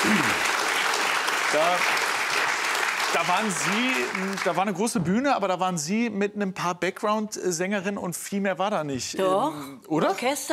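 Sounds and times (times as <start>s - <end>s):
crowd cheer: 0.0s - 4.8s
large audience clapping: 0.0s - 5.0s
speech: 1.5s - 2.0s, 3.1s - 10.5s.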